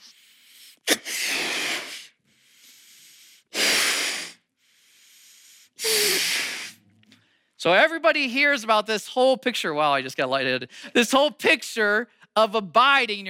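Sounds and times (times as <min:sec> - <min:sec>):
balloon letting out air: 0:00.0 - 0:04.5, 0:05.1 - 0:06.8
speech: 0:07.6 - 0:13.2.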